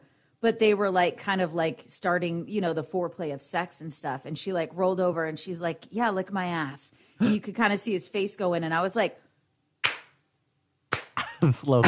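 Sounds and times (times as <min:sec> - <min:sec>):
speech: 0:00.4 - 0:09.2, 0:11.4 - 0:11.8
slow hand clapping: 0:09.8 - 0:10.2, 0:10.9 - 0:11.2.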